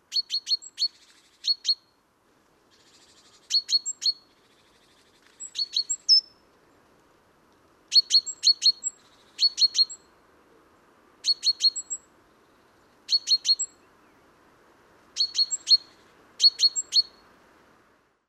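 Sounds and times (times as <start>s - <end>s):
great tit calls: 0.1s - 1.8s, 2.7s - 6.4s, 7.9s - 10.0s, 11.2s - 13.8s, 15.2s - 17.2s.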